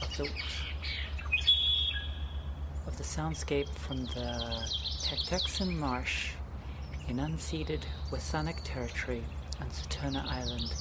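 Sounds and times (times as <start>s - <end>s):
birds chirping in a marsh on Saturna Island, British Columbia: 0.0s - 10.7s
steady low rumble: 0.0s - 10.7s
speech: 0.2s - 1.0s, 2.8s - 6.4s, 7.1s - 10.7s
thin high whistled bird call in a marsh on Saturna Island: 0.8s - 2.4s.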